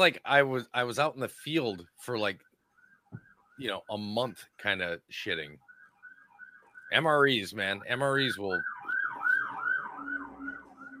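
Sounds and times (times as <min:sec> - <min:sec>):
speech: 0:00.0 - 0:02.5, 0:03.1 - 0:05.7, 0:06.9 - 0:08.7
fire truck siren wailing: 0:02.3 - 0:04.2, 0:05.4 - 0:10.9.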